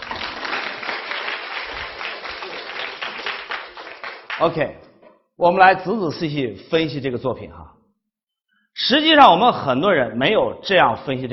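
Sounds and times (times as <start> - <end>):
applause: 0.0 - 4.6
speech: 4.4 - 4.8, 5.4 - 7.8, 8.8 - 11.3.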